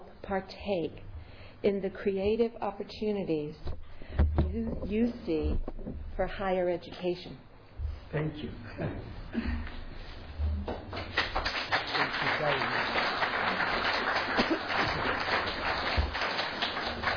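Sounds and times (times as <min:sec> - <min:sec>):
speech: 0:00.3 - 0:03.8, 0:04.5 - 0:07.5, 0:08.1 - 0:09.8, 0:12.4 - 0:13.7
applause welcoming a speaker to the stage: 0:10.9 - 0:17.1.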